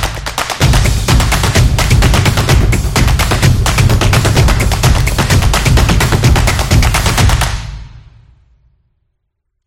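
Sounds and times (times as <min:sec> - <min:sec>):
drums on beat: 0:00.6 - 0:07.4.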